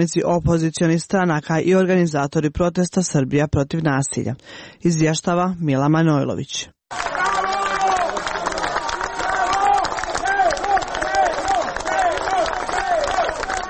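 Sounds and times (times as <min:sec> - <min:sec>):
speech: 0:00.0 - 0:07.1
citizens and opposition party members shouting outside the special court building in Belgrade: 0:06.9 - 0:13.6
citizens applauding outside the special court building in Belgrade: 0:06.9 - 0:13.6.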